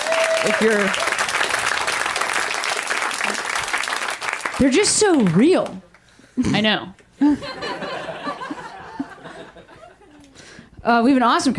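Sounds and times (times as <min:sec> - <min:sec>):
audience applause: 0:00.0 - 0:05.6
speech: 0:00.4 - 0:01.1, 0:04.6 - 0:07.8, 0:10.8 - 0:11.5
laughter: 0:07.2 - 0:10.4.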